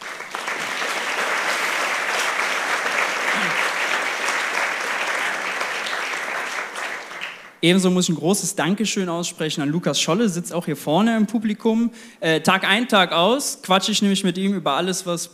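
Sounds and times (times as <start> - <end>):
audience applause: 0.0 - 7.6
speech: 7.6 - 15.3.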